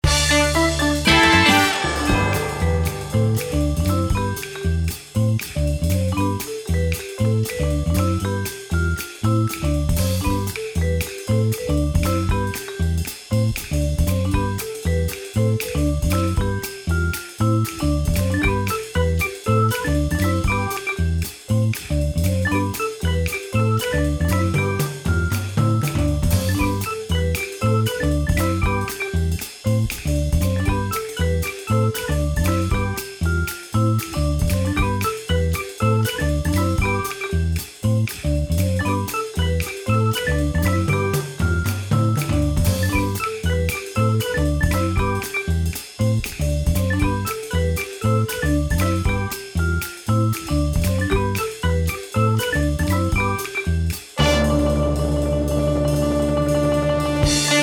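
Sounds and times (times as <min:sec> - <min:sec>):
hold music: 0:00.0 - 0:57.6.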